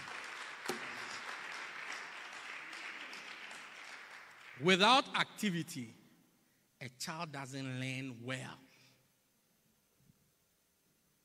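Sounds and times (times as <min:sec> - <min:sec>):
audience clapping: 0:00.0 - 0:05.5
speech: 0:04.6 - 0:06.0, 0:06.8 - 0:08.6.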